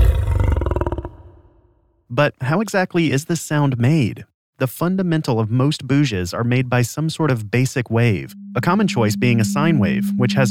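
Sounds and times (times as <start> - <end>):
lion roaring: 0.0 - 1.5
speech: 2.1 - 10.4.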